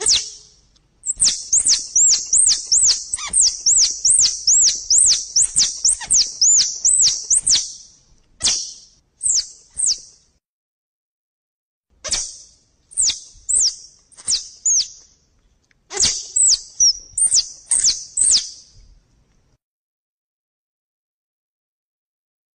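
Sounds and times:
squirrel chirping calls: 0.0s - 10.1s, 12.1s - 15.0s, 15.9s - 18.7s.

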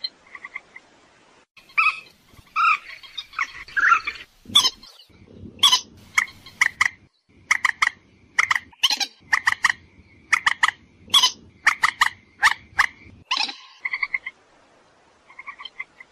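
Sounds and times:
purple swamphen screeching and clucking: 1.7s - 14.3s.

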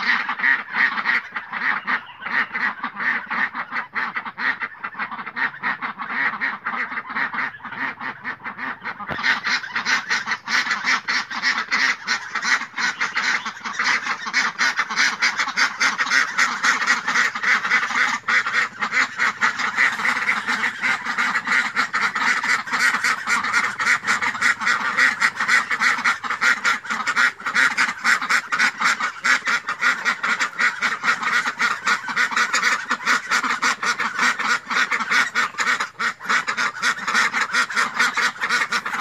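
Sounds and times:
flock of domestic ducks quacking: 0.0s - 38.9s.

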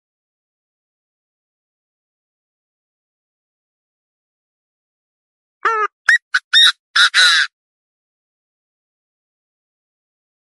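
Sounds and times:
partridge calling: 5.6s - 7.5s.

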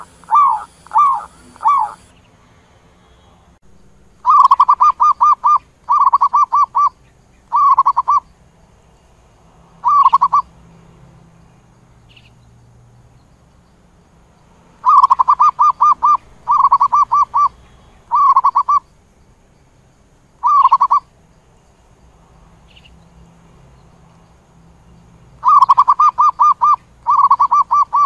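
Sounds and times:
zebra dove cooing: 0.0s - 2.1s, 4.2s - 8.2s, 9.8s - 10.5s, 14.8s - 18.8s, 20.4s - 21.1s, 25.4s - 28.0s.

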